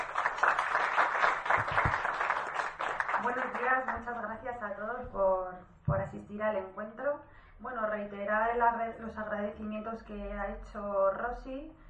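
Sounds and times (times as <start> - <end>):
crowd applause: 0.0 - 3.7
speech: 3.7 - 11.8.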